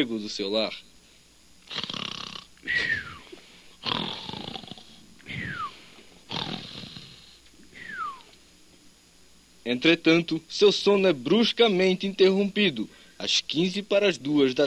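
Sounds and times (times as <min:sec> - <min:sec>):
speech: 0:00.0 - 0:00.9, 0:01.7 - 0:02.0, 0:09.6 - 0:14.6
man snoring in his sleep: 0:01.7 - 0:05.7, 0:06.3 - 0:08.0.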